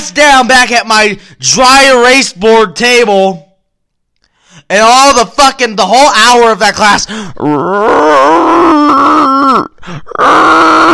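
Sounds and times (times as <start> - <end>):
speech: 0.1 - 3.5, 4.7 - 10.9
voice imitating stomach growling: 7.4 - 10.9.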